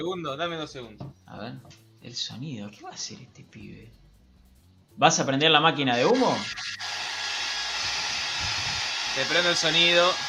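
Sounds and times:
speech: 0:00.0 - 0:04.0, 0:05.0 - 0:06.9, 0:09.2 - 0:10.2
electric saw: 0:06.0 - 0:10.2.

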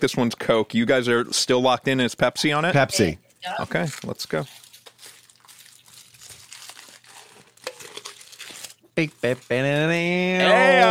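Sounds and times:
speech: 0:00.0 - 0:04.6, 0:09.0 - 0:10.9
crinkly plastic packaging being unwrapped: 0:03.6 - 0:10.3.

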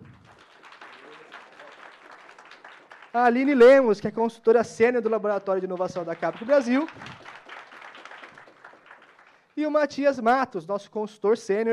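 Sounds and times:
audience applause: 0:00.0 - 0:04.0, 0:04.8 - 0:09.6
speech: 0:03.1 - 0:07.2, 0:09.6 - 0:11.7.

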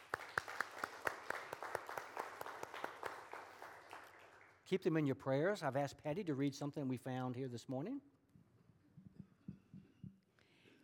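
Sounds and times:
applause: 0:00.0 - 0:04.8
speech: 0:04.7 - 0:08.1.

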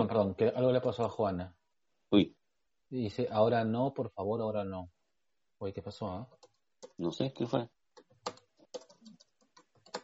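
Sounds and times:
speech: 0:00.0 - 0:05.0, 0:05.6 - 0:08.4
typing on a computer keyboard: 0:06.3 - 0:07.1, 0:07.9 - 0:10.0.

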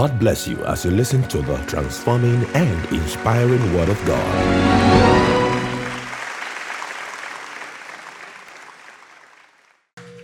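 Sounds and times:
speech: 0:00.0 - 0:05.3
audience clapping: 0:02.0 - 0:10.2.

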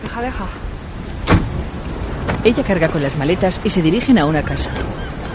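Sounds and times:
speech: 0:00.1 - 0:00.7, 0:02.4 - 0:05.2
car door: 0:01.2 - 0:01.5.

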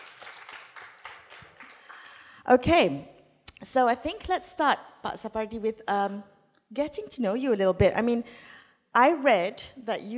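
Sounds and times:
crowd applause: 0:00.0 - 0:02.2
speech: 0:02.5 - 0:10.1.

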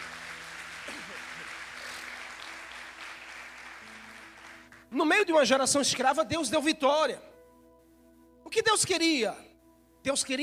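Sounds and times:
audience applauding: 0:00.0 - 0:04.9
speech: 0:04.9 - 0:07.3, 0:08.5 - 0:10.4.

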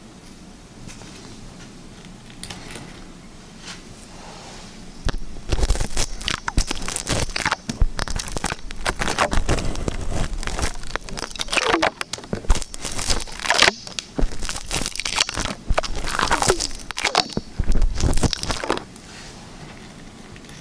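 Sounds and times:
liquid slime squished and stretched: 0:05.1 - 0:18.9.

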